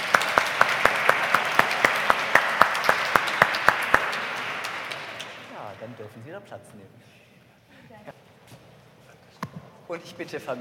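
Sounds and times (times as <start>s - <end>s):
church congregation clapping at a baptism service: 0.0s - 6.2s
speech: 6.2s - 7.2s, 9.9s - 10.5s.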